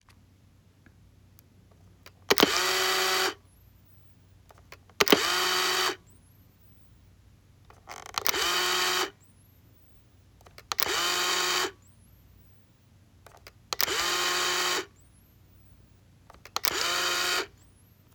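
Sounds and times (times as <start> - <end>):
35mm film camera shutter with flash: 2.3 - 3.4, 4.6 - 6.0, 7.8 - 9.2, 10.4 - 11.8, 13.3 - 15.0, 16.3 - 17.8.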